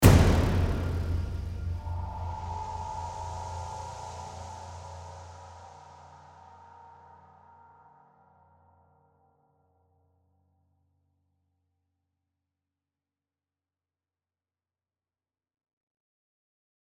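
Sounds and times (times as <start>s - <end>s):
low robot fight music outro: 0.0s - 5.0s.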